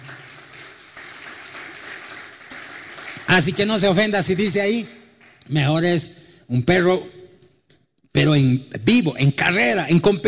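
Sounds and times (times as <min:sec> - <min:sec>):
audience applauding: 0:00.0 - 0:04.6
speech: 0:03.3 - 0:07.2, 0:08.2 - 0:10.2.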